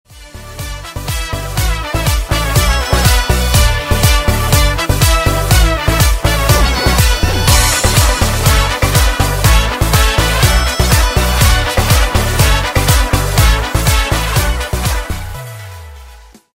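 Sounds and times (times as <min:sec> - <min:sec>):
instrumental music: 0:00.1 - 0:16.5.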